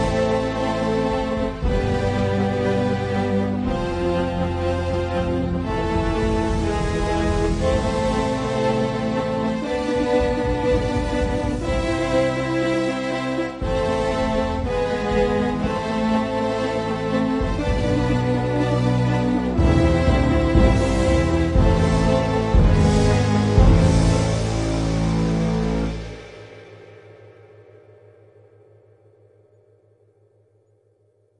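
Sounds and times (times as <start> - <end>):
sad death music: 0.0 - 27.0.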